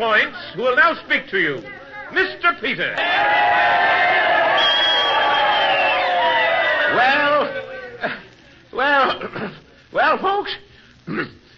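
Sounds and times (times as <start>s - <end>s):
speech: 0.0s - 4.2s, 6.9s - 8.2s, 8.8s - 11.4s
crowd cheering: 3.0s - 8.0s.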